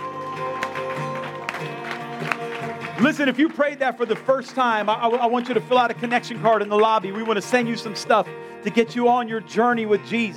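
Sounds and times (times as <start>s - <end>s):
audience clapping: 0.0s - 9.0s
speech: 3.0s - 10.3s.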